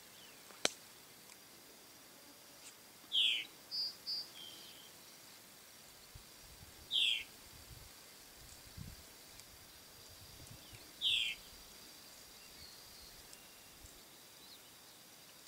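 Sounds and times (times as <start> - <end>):
white-rumped monjita singing: 3.1 - 5.0, 6.9 - 7.3, 10.6 - 11.6, 12.3 - 15.0.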